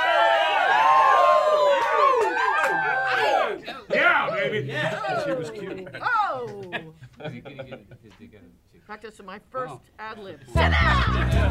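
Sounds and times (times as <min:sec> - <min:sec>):
people yelling: 0:00.0 - 0:06.8
laughter: 0:02.7 - 0:08.3, 0:10.4 - 0:11.4
speech: 0:04.6 - 0:06.1, 0:07.2 - 0:11.4.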